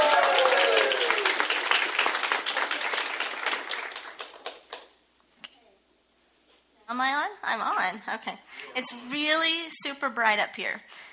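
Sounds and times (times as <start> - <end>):
audience applause: 0.0 - 4.9
speech: 7.0 - 11.1.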